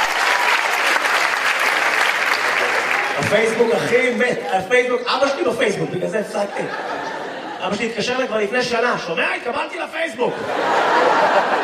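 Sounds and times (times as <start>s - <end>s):
audience applause: 0.0s - 4.5s, 10.8s - 11.6s
speech: 3.2s - 6.9s, 7.6s - 11.6s
laughter: 6.1s - 8.3s, 10.3s - 11.6s.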